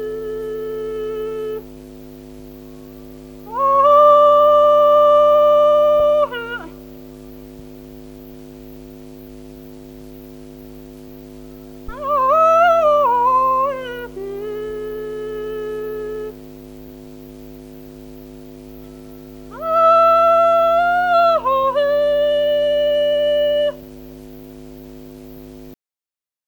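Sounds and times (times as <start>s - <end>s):
kauklåt herding call tune: 0.0s - 1.6s, 3.5s - 6.8s, 11.9s - 16.4s, 18.8s - 23.9s.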